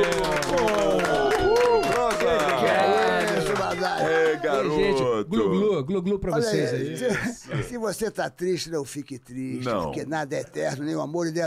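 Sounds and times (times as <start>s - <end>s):
audience clapping and cheering: 0.0s - 5.0s
many overlapping voices shouting: 0.0s - 5.0s
speech: 4.6s - 11.4s.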